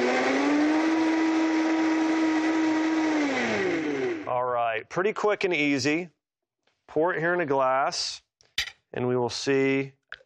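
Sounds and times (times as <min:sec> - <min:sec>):
blender blending a drink: 0:00.0 - 0:04.3
speech: 0:04.9 - 0:06.2, 0:06.9 - 0:08.2, 0:08.9 - 0:10.0.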